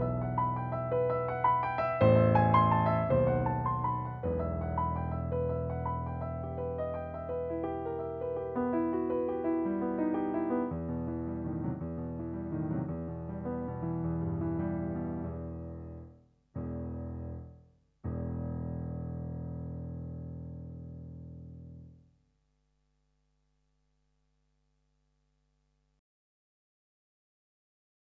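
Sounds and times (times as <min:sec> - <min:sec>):
solo piano: 0:00.0 - 0:22.1.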